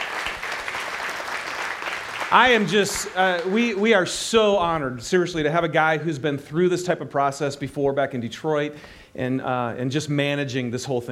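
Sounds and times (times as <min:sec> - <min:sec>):
crowd applauding: 0:00.0 - 0:04.2
speech: 0:02.3 - 0:11.1.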